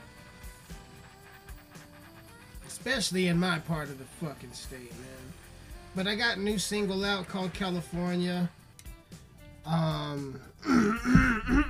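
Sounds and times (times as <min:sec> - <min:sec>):
speech: 0:02.8 - 0:05.4, 0:06.0 - 0:08.6, 0:09.6 - 0:11.6
throat clearing: 0:10.6 - 0:11.6.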